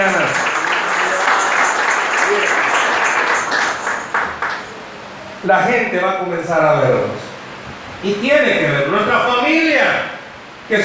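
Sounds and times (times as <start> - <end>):
crowd applause: 0.0 - 4.8
speech: 5.4 - 7.3, 8.0 - 10.1, 10.7 - 10.8.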